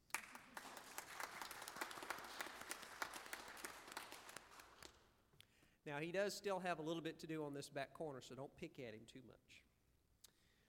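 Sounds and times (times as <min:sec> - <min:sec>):
audience applause: 0:00.1 - 0:04.9
speech: 0:05.8 - 0:09.7.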